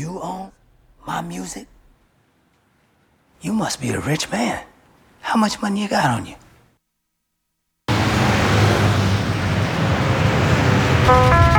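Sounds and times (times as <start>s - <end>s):
speech: 0.0s - 1.8s, 3.4s - 6.4s, 11.1s - 11.4s
steady road noise inside a moving taxi: 7.9s - 11.5s
brief electronic tones: 11.0s - 11.5s.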